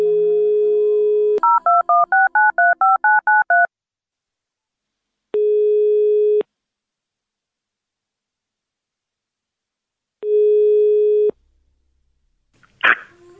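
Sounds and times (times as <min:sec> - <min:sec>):
telephone dial tone: 0:00.0 - 0:03.7, 0:05.4 - 0:06.4, 0:10.2 - 0:11.3
touch-tone telephone dialing beeps: 0:01.4 - 0:03.7.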